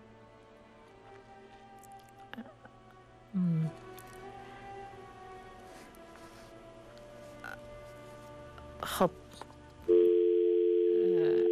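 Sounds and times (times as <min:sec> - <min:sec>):
speech: 0:09.0 - 0:09.2
telephone dial tone on a faulty phone line: 0:09.9 - 0:11.4.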